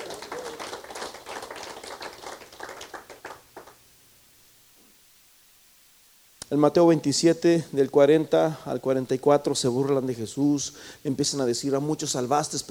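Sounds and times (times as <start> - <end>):
audience applause: 0.0 - 3.8
speech: 6.5 - 12.7.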